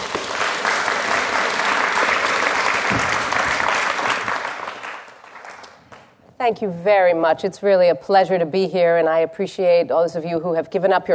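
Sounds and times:
audience applause welcoming a speaker to a lunchtime talk: 0:00.0 - 0:05.8
speech: 0:06.4 - 0:11.1.

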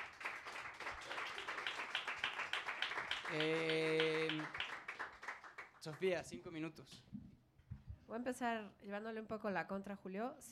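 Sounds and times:
crowd applause: 0:00.0 - 0:06.1
speech: 0:03.3 - 0:04.6, 0:05.8 - 0:07.2, 0:08.1 - 0:10.4.

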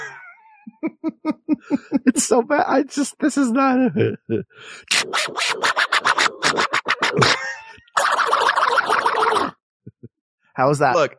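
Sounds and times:
laughter: 0:00.0 - 0:02.6, 0:03.9 - 0:04.5, 0:07.0 - 0:08.0, 0:09.9 - 0:10.1
speech: 0:00.8 - 0:07.5, 0:10.6 - 0:11.1
voice doing an angry cartoon-duck impression: 0:04.8 - 0:09.6.

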